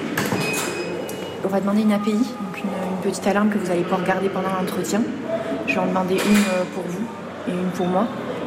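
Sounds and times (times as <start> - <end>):
prison door opening and closing: 0.2 - 1.0
speech: 1.5 - 8.2.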